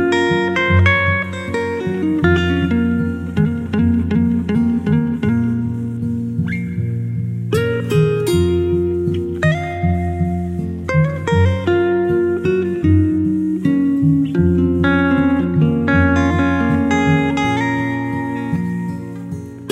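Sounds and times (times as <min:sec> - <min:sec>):
guitar instrumental: 0:00.0 - 0:19.7.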